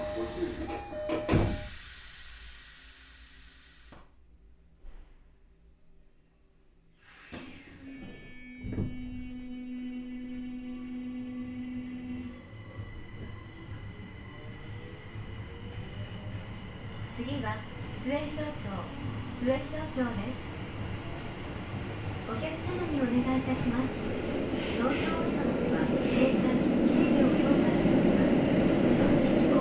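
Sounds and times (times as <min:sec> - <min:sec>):
train departing from station with electric motor whines: 0:00.0 - 0:04.1, 0:07.0 - 0:29.5
speech: 0:00.2 - 0:01.4, 0:19.4 - 0:20.4, 0:22.4 - 0:26.6
hiss of air from a departing train: 0:01.5 - 0:04.1.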